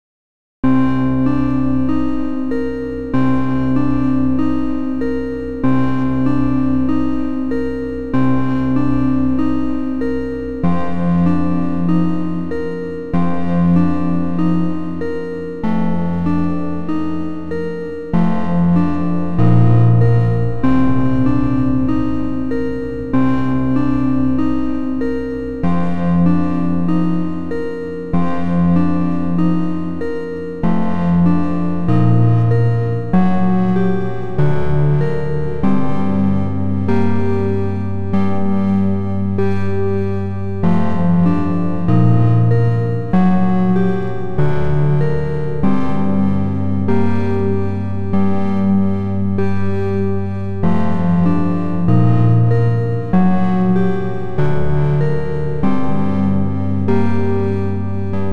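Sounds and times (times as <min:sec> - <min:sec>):
chiptune dungeon synth music: 0:00.6 - 0:58.3.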